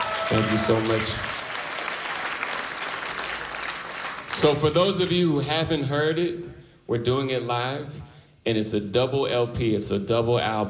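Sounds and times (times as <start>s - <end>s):
audience clapping hands: 0.0s - 5.2s
speech: 0.3s - 1.4s, 4.4s - 10.6s.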